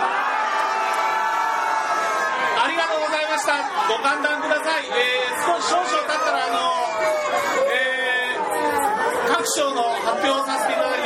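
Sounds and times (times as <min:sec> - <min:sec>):
crowd clapping: 0:00.0 - 0:02.3
crowd cheering after a group toast at an awards gathering: 0:00.0 - 0:11.0
speech: 0:03.4 - 0:08.0, 0:09.3 - 0:11.0.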